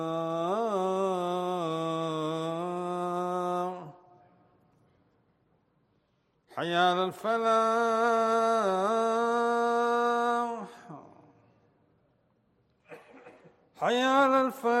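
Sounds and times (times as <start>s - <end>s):
call to prayer: 0.0s - 4.6s, 6.5s - 11.6s, 12.9s - 14.7s.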